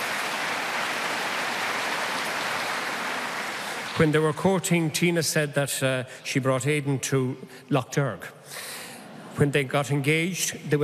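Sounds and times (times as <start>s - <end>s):
round of applause: 0.0s - 4.2s
speech: 4.0s - 8.8s, 9.4s - 10.8s.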